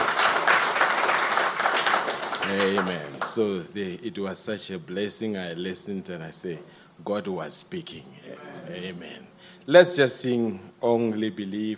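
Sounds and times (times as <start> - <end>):
audience applause: 0.0 - 3.4
speech: 2.5 - 11.7.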